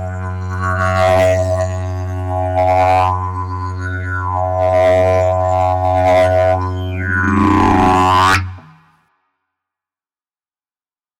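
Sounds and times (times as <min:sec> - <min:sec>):
didgeridoo: 0:00.0 - 0:08.9.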